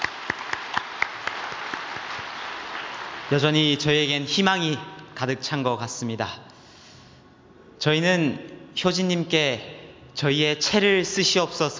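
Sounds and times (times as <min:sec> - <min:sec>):
audience clapping in encouragement: 0:00.0 - 0:03.8
speech: 0:03.3 - 0:06.5, 0:07.8 - 0:11.7.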